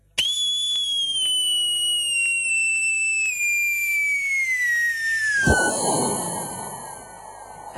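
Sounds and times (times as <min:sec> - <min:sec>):
whistling firework set off at midnight: 0:00.0 - 0:07.7
crackling, hissing firework burst: 0:05.2 - 0:07.7
firework bang: 0:05.4 - 0:07.7.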